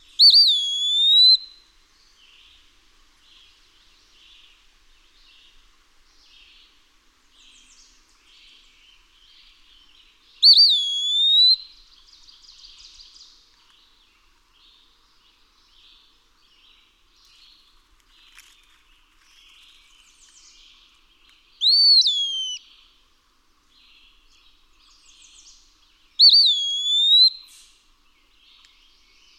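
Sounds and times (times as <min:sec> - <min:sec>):
Eastern wood-pewee whistled pee-a-wee call: 0:00.2 - 0:01.6, 0:10.4 - 0:11.8, 0:21.6 - 0:22.7, 0:26.2 - 0:27.8.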